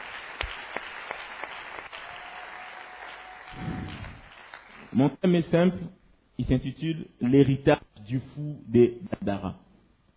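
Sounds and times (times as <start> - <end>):
church congregation applauding and cheering for the word of God: 0.0 - 5.0
speech: 4.9 - 9.6.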